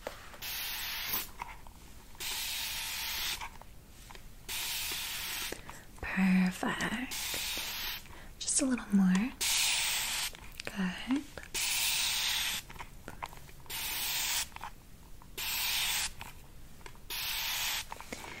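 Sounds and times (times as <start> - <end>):
spray bottle spraying fine mist of water on face: 0.4 - 1.4, 2.2 - 3.4, 4.5 - 5.6, 7.1 - 8.1, 9.4 - 10.4, 11.5 - 12.7, 13.7 - 14.6, 15.4 - 16.2, 17.1 - 18.0
speech: 6.2 - 7.5, 8.6 - 9.4, 10.8 - 11.5.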